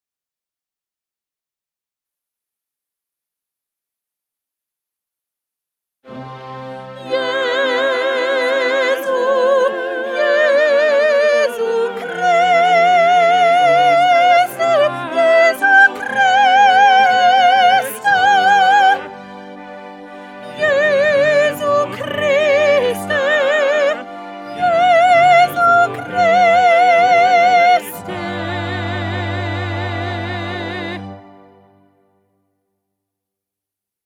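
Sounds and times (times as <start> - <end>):
soprano singing a mass: 6.8 - 31.9.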